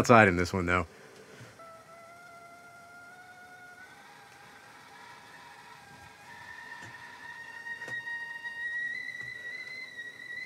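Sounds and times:
speech: 0.0s - 1.0s
soft hiss: 0.0s - 10.4s
faint clicks: 1.1s - 1.6s, 3.8s - 10.4s
kettle whistling on the boil: 1.1s - 10.4s.

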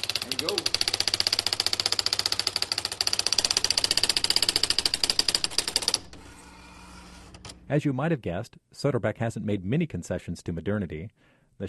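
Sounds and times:
Adler Satellite 80 electric typewriter running: 0.0s - 7.6s
speech: 7.7s - 11.6s.

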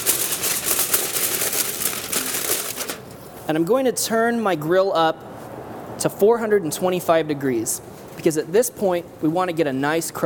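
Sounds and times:
aluminium foil crinkling over a smoked roast in a pan: 0.0s - 3.3s
speech: 3.5s - 5.3s, 6.0s - 10.2s.

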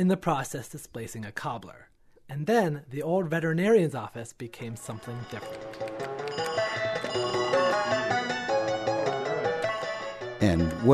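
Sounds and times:
speech: 0.0s - 6.1s, 10.4s - 10.9s
1980s arcade video game bleeps and blips: 6.3s - 10.9s.

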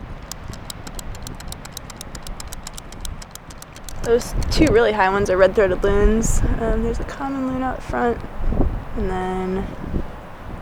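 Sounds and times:
hand tally counters clicking: 0.0s - 4.8s
speech: 4.0s - 10.1s.

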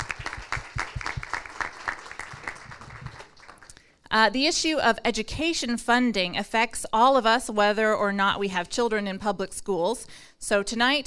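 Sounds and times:
audience applause: 0.0s - 3.7s
speech: 4.1s - 11.0s.

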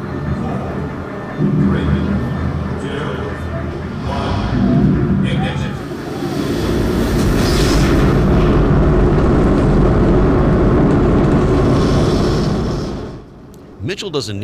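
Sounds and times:
murmuring voices: 0.0s - 6.7s
Saturn V rocket engine test firing roar: 0.0s - 13.8s
speech: 1.4s - 2.2s, 14.0s - 14.4s.

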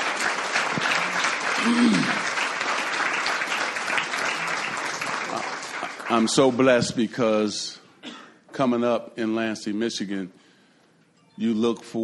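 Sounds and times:
audience clapping applause: 0.0s - 6.7s
speech: 1.6s - 2.3s, 6.1s - 7.8s, 8.6s - 10.4s, 11.4s - 12.0s.

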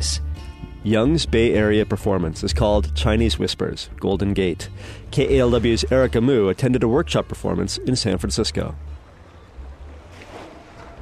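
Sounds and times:
speech: 0.0s - 8.9s
water lapping at Hyde Street Pier in San Francisco: 4.8s - 11.0s.

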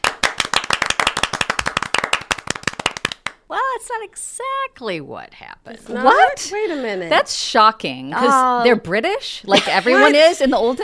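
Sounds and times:
audience clapping to welcome a guest onto a show: 0.0s - 3.4s
speech: 3.8s - 10.8s.

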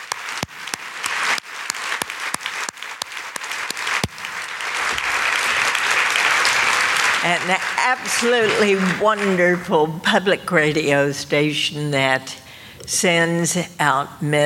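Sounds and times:
audience applause: 0.0s - 9.9s
speech: 7.2s - 14.4s.

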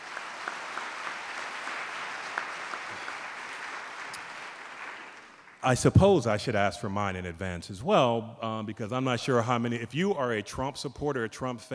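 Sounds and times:
audience applause: 0.0s - 5.6s
speech: 5.6s - 11.7s.

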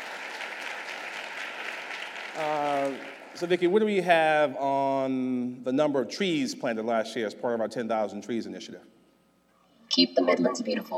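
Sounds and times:
audience applause: 0.0s - 3.4s
speech: 2.4s - 9.0s, 10.0s - 10.9s.

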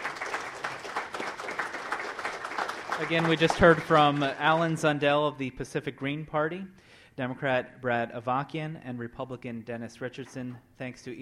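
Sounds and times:
audience applause: 0.0s - 4.8s
speech: 3.0s - 11.2s.

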